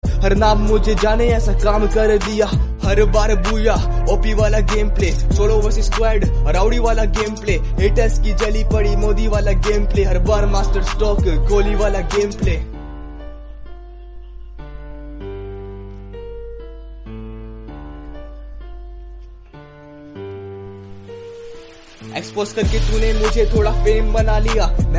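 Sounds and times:
rapping: 0.0s - 12.7s, 22.1s - 24.9s.

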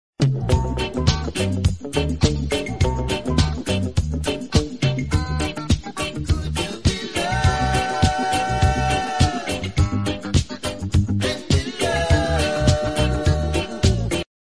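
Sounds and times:
instrumental music: 0.2s - 14.3s.

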